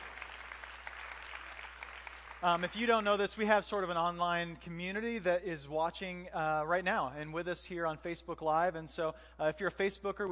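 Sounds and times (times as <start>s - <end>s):
church audience applauding: 0.0s - 3.2s
speech: 2.4s - 10.3s.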